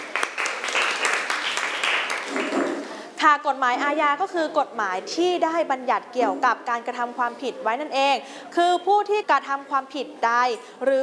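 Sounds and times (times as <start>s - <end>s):
students clapping for a classmate: 0.0s - 2.8s
speech: 3.3s - 11.0s.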